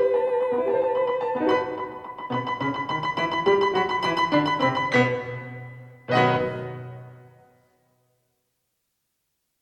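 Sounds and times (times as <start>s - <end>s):
guitars playing: 0.0s - 7.5s.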